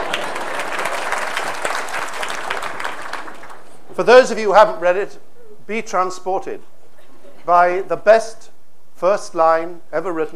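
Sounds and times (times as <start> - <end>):
audience applause: 0.0 - 3.8
speech: 4.0 - 6.7, 7.4 - 10.3.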